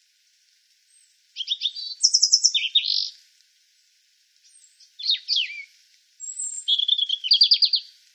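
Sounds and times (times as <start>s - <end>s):
European robin Erithacus rubecula singing high tinkling phrases: 0.9s - 3.2s, 4.4s - 7.9s.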